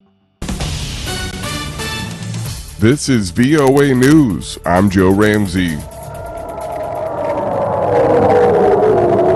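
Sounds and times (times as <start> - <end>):
speech: 2.8 - 5.9
air raid sirens in Ashkelon, Israel: 2.8 - 9.3.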